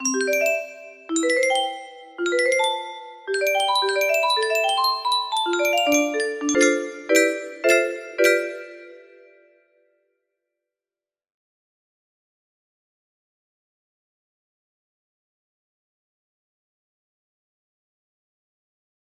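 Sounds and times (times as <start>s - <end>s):
music box melody: 0.0s - 9.4s.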